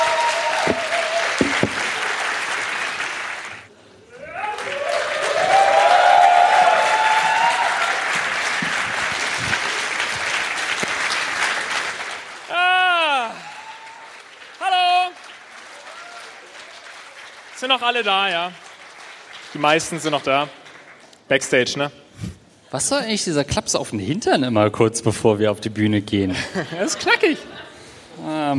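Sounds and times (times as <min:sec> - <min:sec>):
whistles and cheers: 0:00.0 - 0:01.5, 0:04.2 - 0:08.3, 0:13.4 - 0:14.3, 0:15.7 - 0:17.1
large audience clapping: 0:00.0 - 0:21.3
speech: 0:17.8 - 0:18.6, 0:19.5 - 0:20.6, 0:21.3 - 0:22.0, 0:22.7 - 0:27.5
laughter: 0:26.3 - 0:27.9.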